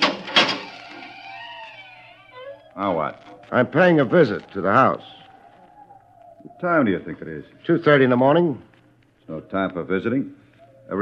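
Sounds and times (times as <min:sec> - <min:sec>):
gate in a wall being opened at night: 0:00.0 - 0:01.4
speech: 0:02.8 - 0:05.2, 0:06.6 - 0:08.7, 0:09.3 - 0:11.0.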